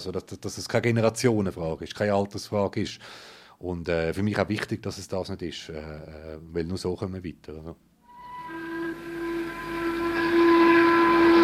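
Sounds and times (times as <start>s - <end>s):
speech: 0.0s - 7.9s
shift-change factory siren: 8.0s - 11.4s.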